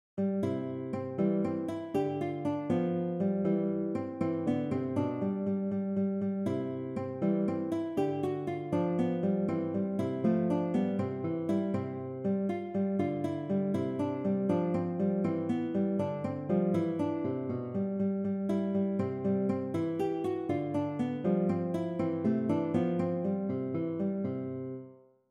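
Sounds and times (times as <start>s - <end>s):
waltz on classical guitar: 0.2s - 25.0s.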